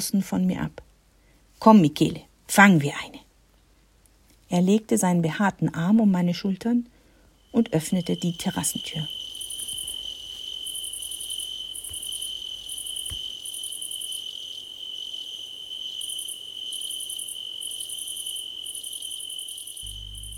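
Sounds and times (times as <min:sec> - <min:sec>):
speech: 0:00.0 - 0:00.9, 0:01.6 - 0:03.2, 0:04.5 - 0:06.9, 0:07.5 - 0:09.2
cricket chirping: 0:07.0 - 0:20.3.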